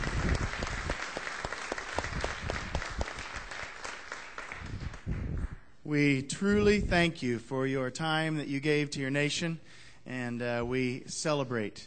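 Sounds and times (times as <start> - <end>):
crowd applauding: 0.0 - 5.7
speech: 5.9 - 11.8.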